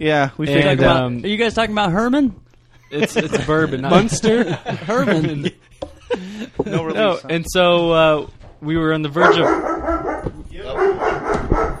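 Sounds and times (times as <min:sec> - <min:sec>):
laughter: 0:00.0 - 0:09.5, 0:10.6 - 0:11.7
speech: 0:00.0 - 0:09.8
dog barking in the background: 0:09.2 - 0:11.7.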